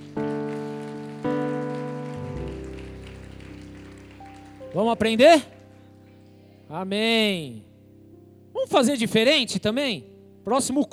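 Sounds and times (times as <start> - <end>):
audience clapping: 0.0 - 7.3
sustained keyboard chords: 0.0 - 10.9
speech: 4.7 - 5.5, 6.7 - 7.7, 8.7 - 10.9.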